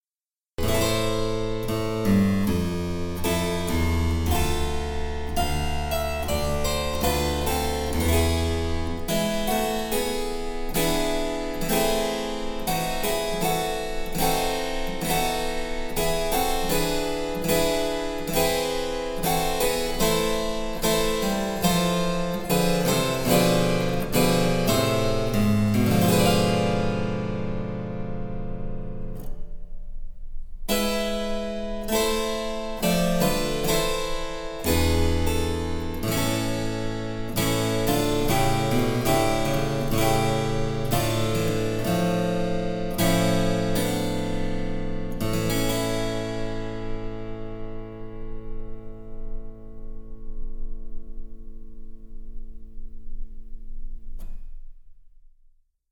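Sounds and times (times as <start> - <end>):
harpsichord: 0.6 - 29.3, 30.7 - 49.7.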